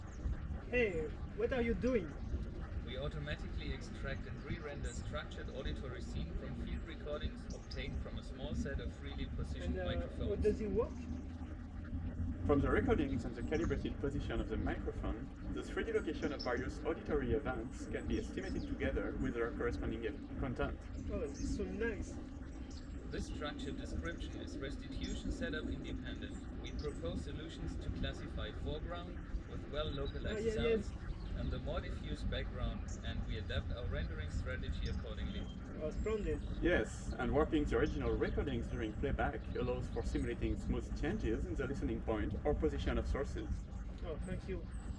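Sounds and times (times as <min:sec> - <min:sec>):
outdoor ambience: 0:00.0 - 0:44.9.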